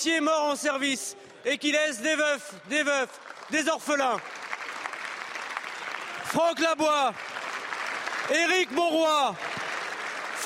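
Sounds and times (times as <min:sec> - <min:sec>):
speech: 0:00.0 - 0:04.4, 0:06.3 - 0:07.3, 0:08.3 - 0:09.5
applause in a parliamentary chamber: 0:02.6 - 0:10.4.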